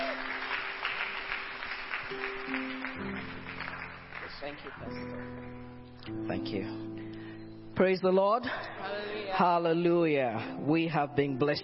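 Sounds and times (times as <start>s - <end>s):
church congregation applauding to welcome a pastor: 0.0s - 5.6s
speech: 2.1s - 2.6s, 4.4s - 7.0s, 7.8s - 11.6s.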